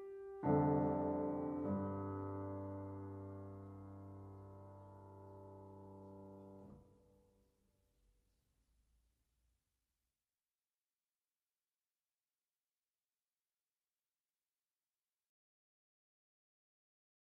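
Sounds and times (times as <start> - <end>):
piano prelude: 0.0 - 6.8.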